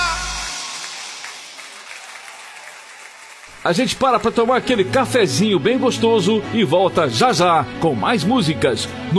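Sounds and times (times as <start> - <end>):
applause: 0.1 - 4.8
speech: 3.6 - 9.1.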